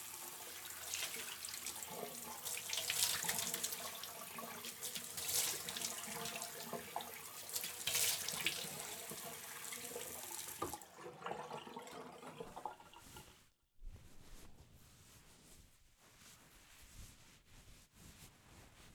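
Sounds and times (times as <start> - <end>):
person washing face with splashing water: 0.0 - 10.8
water running from a tap into a sink: 0.0 - 13.3.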